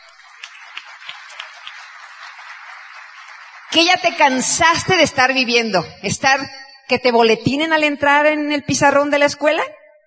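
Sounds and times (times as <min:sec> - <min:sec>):
audience applause: 0:00.0 - 0:04.6
speech: 0:03.7 - 0:09.8.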